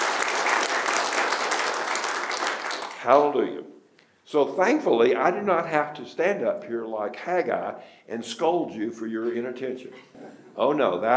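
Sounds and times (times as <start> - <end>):
audience applause: 0.0 - 3.3
speech: 3.0 - 11.1.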